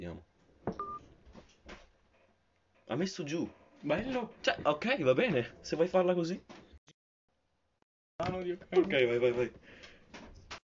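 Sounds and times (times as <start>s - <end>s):
speech: 0.0s - 0.9s, 2.9s - 6.6s, 8.3s - 10.3s
faint electronic telephone dialing beep: 0.8s - 1.0s.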